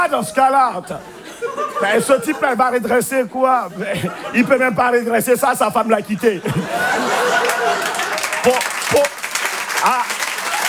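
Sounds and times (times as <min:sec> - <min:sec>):
speech: 0:00.0 - 0:09.2, 0:09.8 - 0:10.1
scattered laughs and voices: 0:00.2 - 0:09.1
crowd applause: 0:06.6 - 0:10.6.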